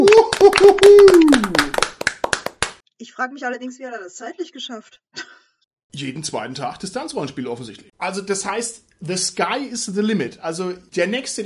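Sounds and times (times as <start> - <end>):
hand clapping applause: 0.0 - 2.8
speech: 3.2 - 11.4.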